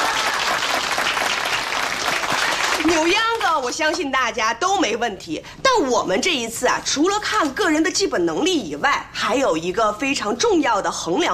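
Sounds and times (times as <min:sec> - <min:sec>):
group applause about joining a yangge dance team: 0:00.0 - 0:03.9
speech: 0:02.9 - 0:11.3.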